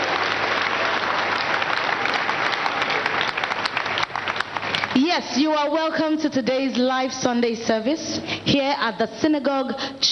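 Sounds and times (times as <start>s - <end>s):
crowd applauding: 0.0s - 5.0s
speech: 5.0s - 10.1s.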